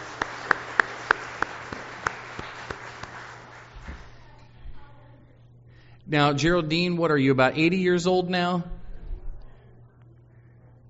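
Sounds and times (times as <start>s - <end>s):
audience applause: 0.0s - 4.2s
speech: 6.1s - 8.8s.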